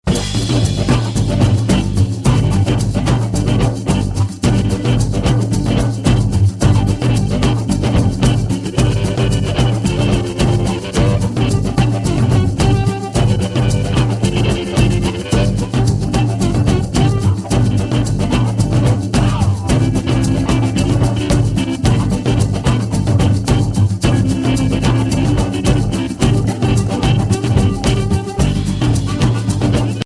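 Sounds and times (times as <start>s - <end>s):
jazz drum kit: 0.0s - 30.0s.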